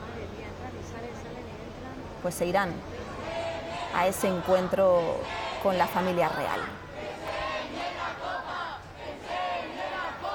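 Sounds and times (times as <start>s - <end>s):
speech: 2.2s - 3.0s, 3.9s - 6.8s
football fans chanting outside team bus: 2.6s - 10.3s.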